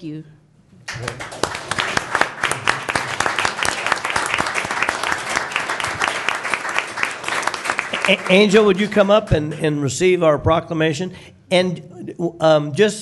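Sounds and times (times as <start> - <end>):
speech: 0.0 - 2.0, 8.1 - 13.0
audience applause: 0.9 - 9.0.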